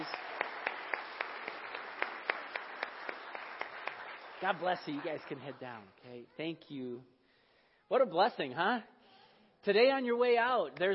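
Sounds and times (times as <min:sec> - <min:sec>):
one pair of hands clapping sharply: 0:00.0 - 0:05.4
audience applauding: 0:00.0 - 0:05.9
speech: 0:04.4 - 0:07.2, 0:07.9 - 0:09.0, 0:09.6 - 0:10.9.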